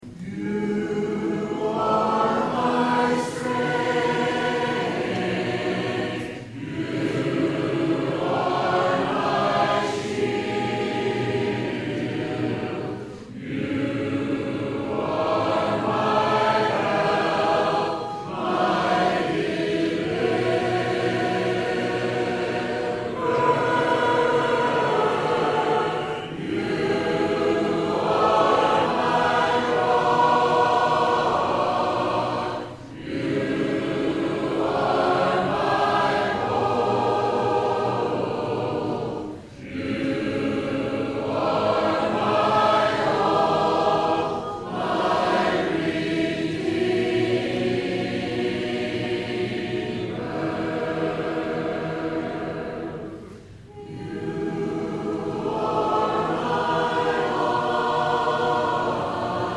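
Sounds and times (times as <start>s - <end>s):
a cappella hymn singing: 0.0s - 59.5s.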